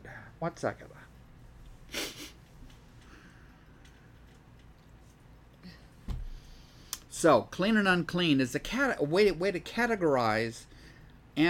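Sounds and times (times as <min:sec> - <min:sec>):
speech: 0:00.4 - 0:00.9, 0:07.2 - 0:10.7
person sneezing: 0:01.9 - 0:02.4.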